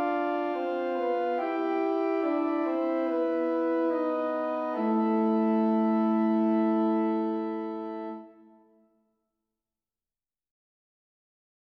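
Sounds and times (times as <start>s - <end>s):
double counterpoint at the twelfth and fifth: 0.0s - 8.6s.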